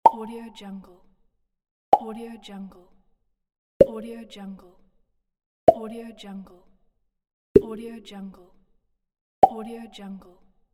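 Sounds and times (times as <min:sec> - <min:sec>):
pop: 0:01.9 - 0:02.2.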